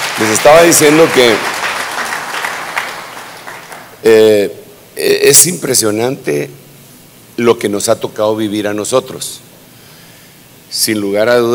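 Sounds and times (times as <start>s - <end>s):
crowd applause: 0.0s - 4.0s
speech: 0.2s - 1.6s, 4.0s - 6.6s, 7.4s - 9.5s, 10.7s - 11.5s.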